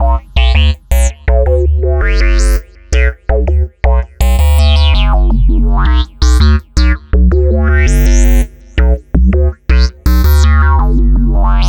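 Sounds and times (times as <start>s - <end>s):
synth bass: 0.0s - 11.6s.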